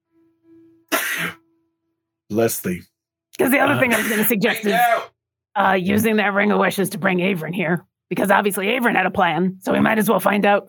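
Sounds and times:
person sneezing: 0:00.9 - 0:01.4, 0:03.6 - 0:05.1
speech: 0:02.3 - 0:10.6.

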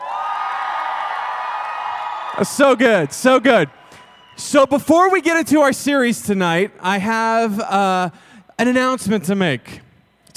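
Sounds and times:
crowd yelling: 0:00.0 - 0:05.2
speech: 0:02.4 - 0:03.8, 0:04.4 - 0:09.8.

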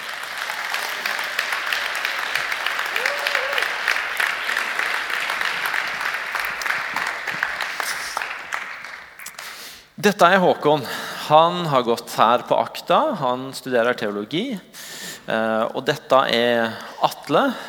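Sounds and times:
audience applause: 0:00.0 - 0:09.6
speech: 0:10.0 - 0:17.6.

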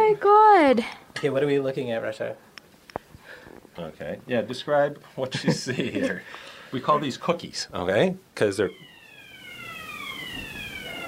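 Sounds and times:
speech: 0:00.1 - 0:02.5, 0:03.8 - 0:08.9
fire alarm: 0:08.7 - 0:11.0.

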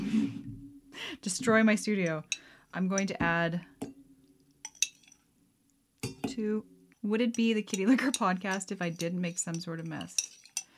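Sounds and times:
speech: 0:01.2 - 0:03.7, 0:06.4 - 0:10.3
miniature spoon clinking in glass: 0:04.6 - 0:05.2, 0:07.4 - 0:10.7.

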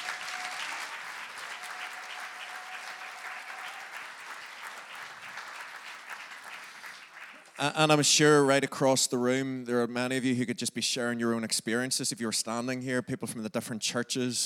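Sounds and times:
audience round of applause: 0:00.0 - 0:08.0
speech: 0:07.6 - 0:14.4.

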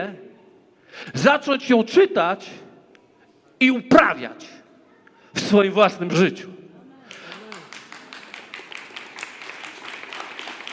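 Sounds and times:
speech: 0:00.0 - 0:00.3, 0:00.9 - 0:02.6, 0:03.6 - 0:04.6, 0:05.4 - 0:06.5
lone person clapping hands: 0:07.1 - 0:10.7.

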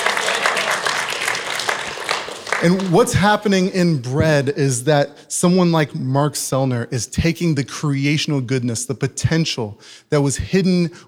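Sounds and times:
audience applause: 0:00.0 - 0:03.2
speech: 0:02.6 - 0:11.0.

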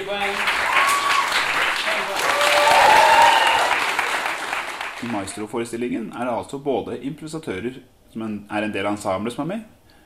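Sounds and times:
audience applause: 0:00.0 - 0:05.4
voices cheering: 0:00.2 - 0:05.4
speech: 0:05.0 - 0:09.8.

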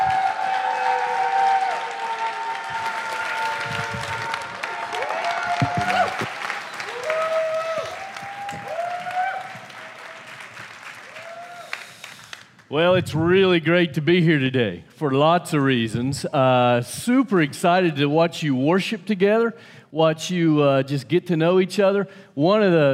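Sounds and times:
cheering and whoops: 0:00.0 - 0:12.1
audience applause: 0:00.0 - 0:12.7
speech: 0:12.8 - 0:22.9.

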